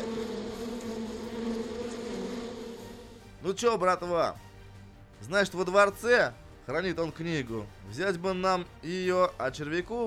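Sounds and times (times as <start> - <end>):
bee swarm buzzing: 0.0 - 3.4
speech: 3.5 - 4.5, 5.2 - 10.0.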